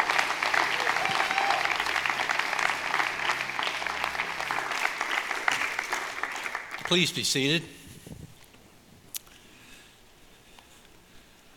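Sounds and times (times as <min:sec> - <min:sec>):
church audience applause welcoming a pastor to the stage: 0:00.0 - 0:07.6
speech: 0:06.9 - 0:07.8.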